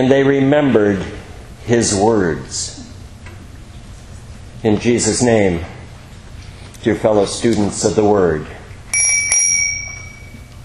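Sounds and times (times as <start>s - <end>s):
speech: 0.0s - 2.9s, 4.6s - 5.8s, 6.8s - 8.6s
bell ringing: 8.9s - 10.6s.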